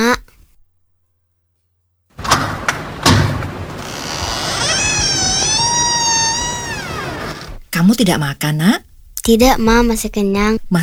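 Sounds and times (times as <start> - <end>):
door being opened with dull thuds: 2.2 - 7.6
speech: 8.0 - 10.8.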